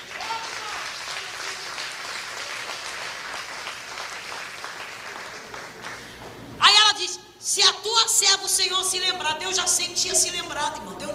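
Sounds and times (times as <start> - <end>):
audience applauding: 0.0 - 6.2
speech: 7.6 - 11.1.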